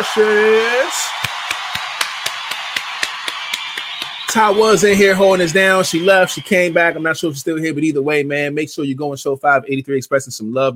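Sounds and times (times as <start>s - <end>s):
speech: 0.0s - 1.3s, 4.4s - 10.7s
round of applause: 0.0s - 7.2s.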